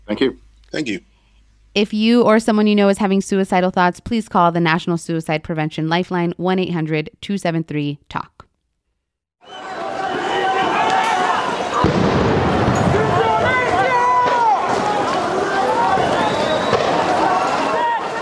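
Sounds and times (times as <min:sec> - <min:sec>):
speech: 0:00.1 - 0:01.1, 0:01.8 - 0:08.4
protesters shouting and yelling during anti-government demonstrations in Colombia: 0:09.4 - 0:18.2
protesters running from police in Colombia: 0:09.5 - 0:18.2.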